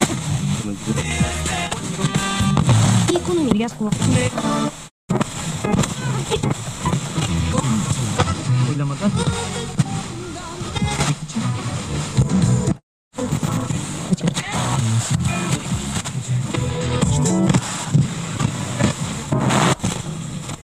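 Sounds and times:
FM radio tuner tuning: 0.0 - 20.1.

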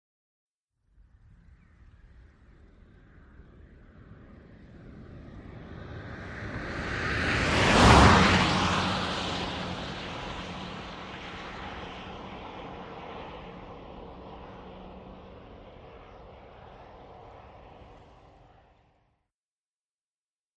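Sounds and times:
Austin Montego car passing by: 3.4 - 18.9.

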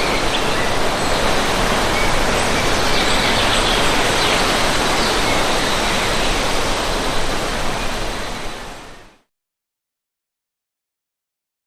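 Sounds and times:
spacious birdsong in forest: 0.0 - 9.2
strong wind rushing through tall trees in forest: 0.0 - 9.2.

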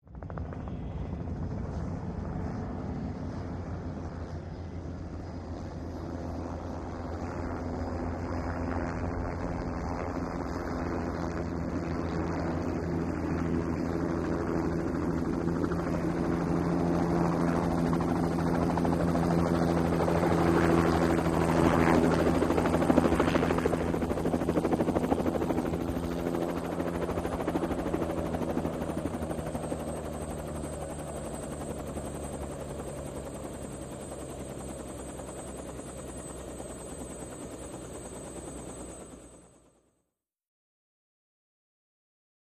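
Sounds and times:
Bell Jet Ranger helicopter flying in and landing: 0.1 - 39.8.

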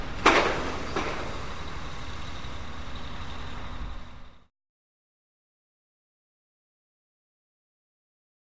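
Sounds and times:
pile driver starting up: 0.0 - 4.2.

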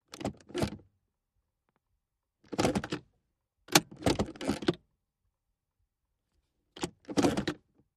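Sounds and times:
1998 Mitsubishi Montero interior gear shift: 0.1 - 0.9, 2.4 - 4.9, 6.7 - 7.8.

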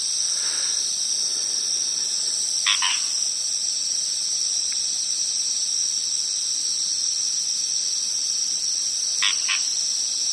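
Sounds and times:
frog calling: 0.2 - 3.6, 9.1 - 10.2.

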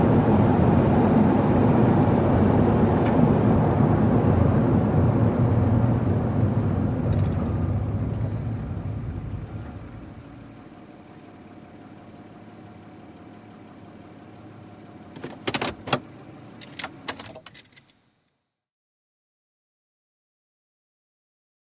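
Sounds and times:
SUV at 55 to 65 mph slowing down: 0.0 - 15.2.

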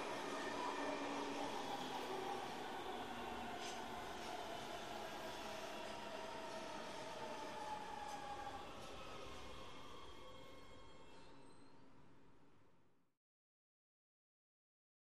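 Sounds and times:
subway train accelerating: 0.0 - 12.6.

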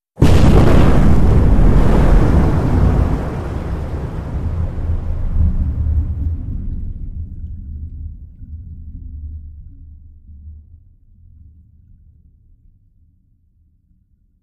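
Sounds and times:
underwater explosions: 0.2 - 8.2.

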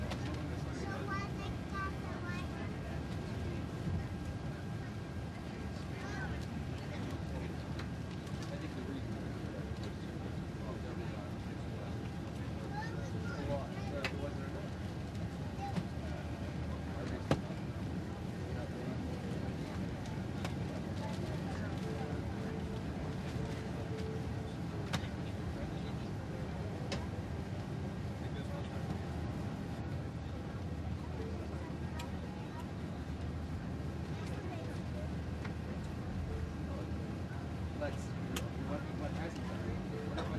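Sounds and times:
Boeing 747 jet interior during landing taxi: 0.0 - 40.3.

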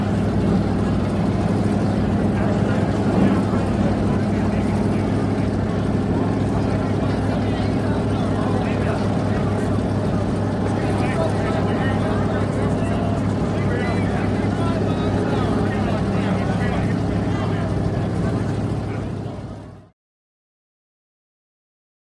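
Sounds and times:
offshore power boat engines before a race: 0.0 - 19.9.

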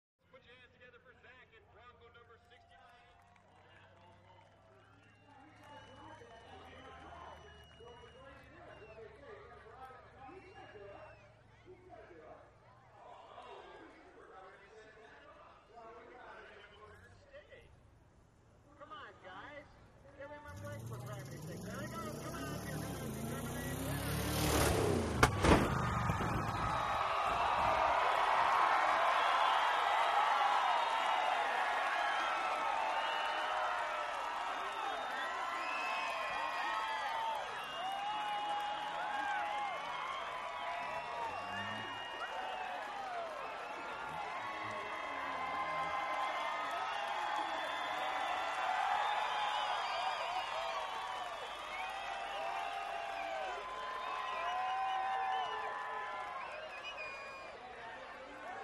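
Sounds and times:
crowd cheering and applauding: 2.5 - 11.4, 20.1 - 58.6
4x4 pickup truck jumping and racing through obstacle course: 20.4 - 31.8, 38.4 - 50.0.

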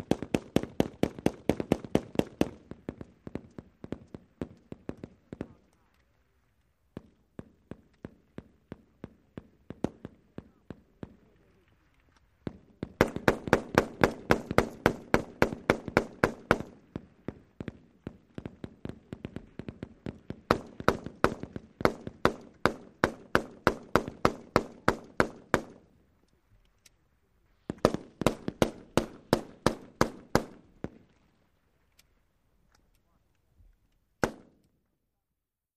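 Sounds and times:
multiple weapons firing, M16 and M60: 0.0 - 5.9, 7.0 - 11.6, 12.4 - 25.9, 27.6 - 31.1, 34.2 - 34.7.

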